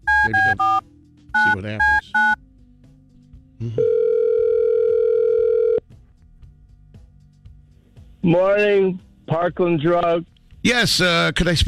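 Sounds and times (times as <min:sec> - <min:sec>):
speech: 0:00.2 - 0:00.9, 0:01.6 - 0:02.3, 0:08.2 - 0:11.6
telephone dial tone: 0:03.8 - 0:05.8.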